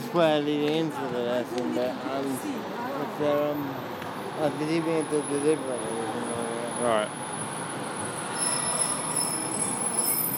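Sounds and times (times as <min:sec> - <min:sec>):
speech: 0:00.1 - 0:07.3
tram stopping: 0:08.4 - 0:10.3.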